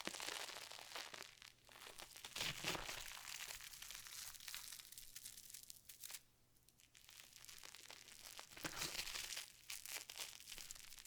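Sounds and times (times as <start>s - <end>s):
slime squished and crinkled: 0.2s - 4.4s, 8.4s - 10.6s.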